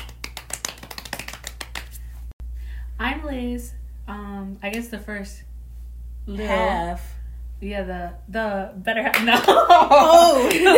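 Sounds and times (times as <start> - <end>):
hand claps: 0.0 - 2.2, 10.4 - 10.7
speech: 3.0 - 5.5, 6.3 - 10.7.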